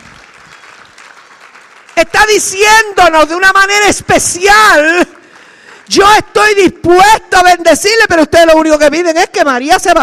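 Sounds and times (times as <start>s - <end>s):
audience applause: 0.0s - 2.2s, 5.1s - 5.9s
speech: 2.0s - 5.1s, 5.9s - 10.0s.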